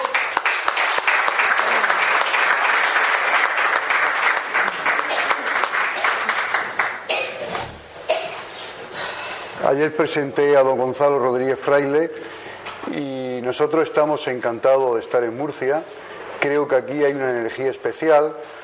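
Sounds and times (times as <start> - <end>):
audience applause: 0.0 - 7.1
speech: 9.7 - 18.6.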